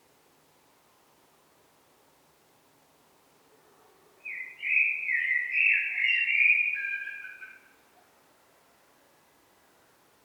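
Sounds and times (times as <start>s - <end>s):
Eurasian blackbird singing: 4.2s - 7.6s.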